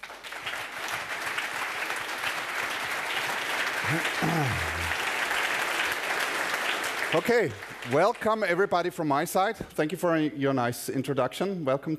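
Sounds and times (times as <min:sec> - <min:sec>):
audience applause: 0:00.0 - 0:08.2
speech: 0:03.9 - 0:04.8, 0:07.1 - 0:11.9.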